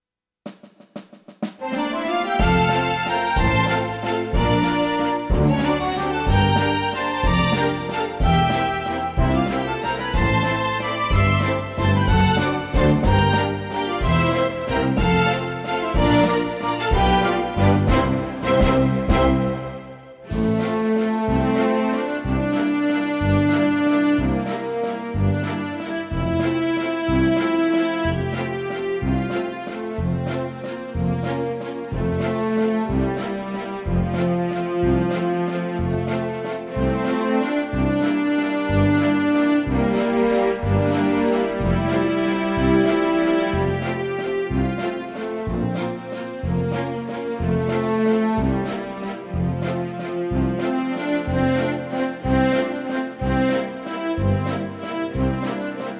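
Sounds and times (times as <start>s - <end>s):
waltz music: 1.6s - 55.9s.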